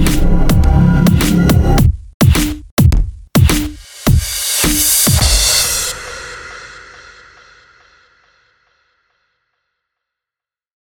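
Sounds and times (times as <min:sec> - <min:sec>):
hip hop beat: 0:00.0 - 0:06.6.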